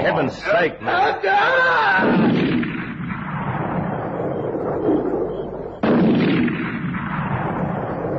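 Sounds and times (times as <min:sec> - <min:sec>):
speech: 0:00.0 - 0:02.4
gunshots: 0:02.0 - 0:04.9, 0:05.8 - 0:08.1.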